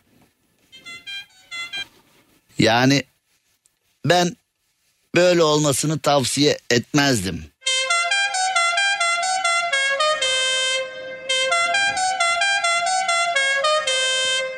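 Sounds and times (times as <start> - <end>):
speech: 2.6 - 3.1, 4.0 - 4.4, 5.2 - 7.5
wedding convoy car horns honking: 7.6 - 14.5.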